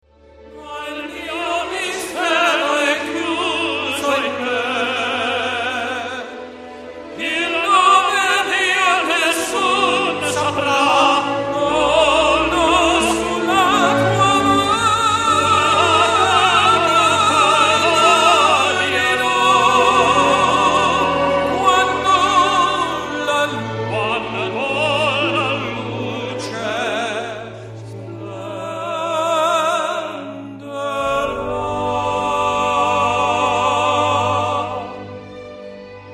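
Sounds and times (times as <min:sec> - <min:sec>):
tenor voices singing: 0:00.6 - 0:35.9.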